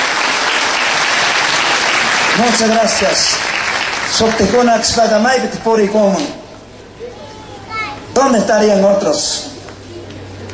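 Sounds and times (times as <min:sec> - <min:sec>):
applause: 0:00.0 - 0:05.3
speech: 0:02.4 - 0:06.4, 0:08.2 - 0:09.5.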